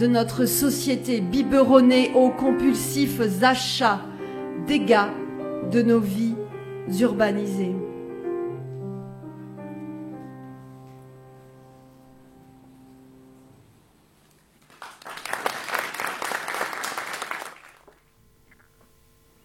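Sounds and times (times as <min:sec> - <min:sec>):
speech: 0:00.0 - 0:04.1, 0:04.7 - 0:07.9
audience applause: 0:14.6 - 0:18.0.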